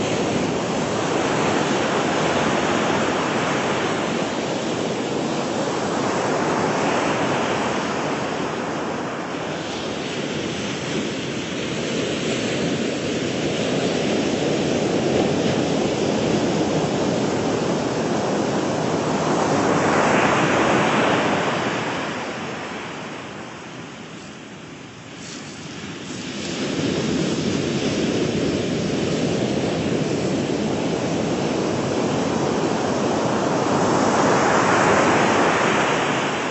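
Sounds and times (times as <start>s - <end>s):
beach waves and surf: 0.0s - 36.4s.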